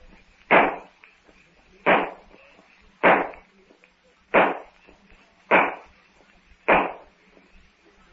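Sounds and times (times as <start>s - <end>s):
gunshots in a Tarzan radio drama: 0.5s - 0.9s, 1.8s - 2.3s, 3.0s - 3.4s, 4.3s - 4.8s, 5.5s - 5.9s, 6.7s - 7.1s.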